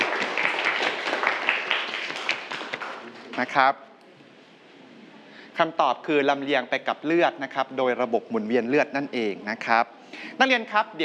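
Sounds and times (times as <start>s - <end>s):
students clapping for a classmate: 0.0s - 3.6s
speech: 3.4s - 3.8s, 5.6s - 11.0s.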